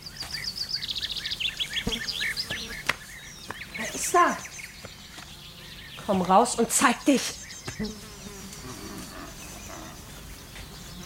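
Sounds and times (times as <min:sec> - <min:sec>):
many bees buzzing: 0:00.3 - 0:11.0
speech: 0:06.1 - 0:08.0.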